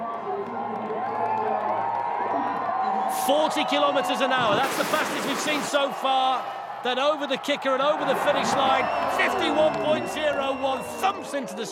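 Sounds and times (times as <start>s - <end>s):
crowd cheering and shouting: 0.0s - 11.7s
speech: 3.1s - 11.7s.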